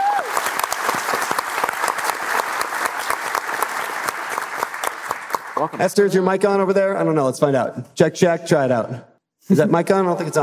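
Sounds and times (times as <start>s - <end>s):
whoops: 0.0s - 0.6s
audience clapping: 0.0s - 6.1s
speech: 5.6s - 10.4s.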